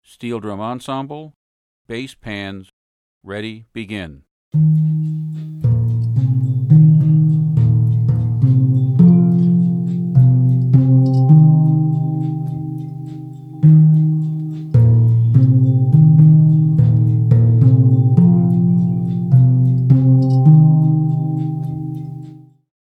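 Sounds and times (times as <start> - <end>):
bass: 4.6 - 22.4.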